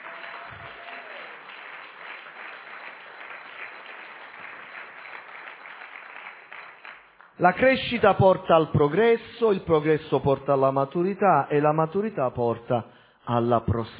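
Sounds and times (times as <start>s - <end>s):
audience applause: 0.0s - 7.3s
speech: 7.4s - 13.9s.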